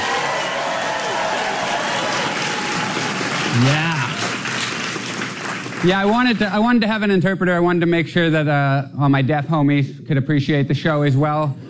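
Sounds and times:
audience applause: 0.0 - 6.4
speech: 3.6 - 3.9, 5.8 - 11.6.

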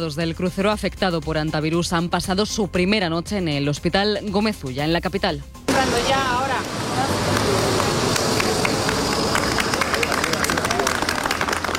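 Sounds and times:
speech: 0.0 - 7.1
group of people applauding evacuees arriving at hospital: 6.6 - 11.7.

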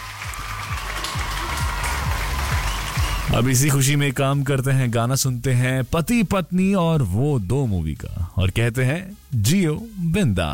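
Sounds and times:
applause sound effect: 0.0 - 3.4
speech: 3.3 - 10.5.

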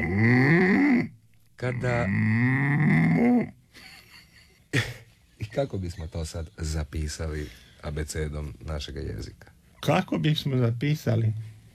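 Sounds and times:
man imitating cow moo: 0.0 - 1.1, 1.8 - 3.6
speech: 1.6 - 3.6, 5.6 - 11.5.

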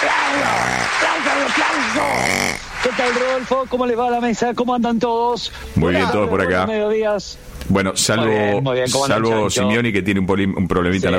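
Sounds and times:
person speaking loudly: 0.0 - 2.6
studio audience applauding a correspondent on a sports program: 0.0 - 4.0
speech: 1.6 - 11.1.

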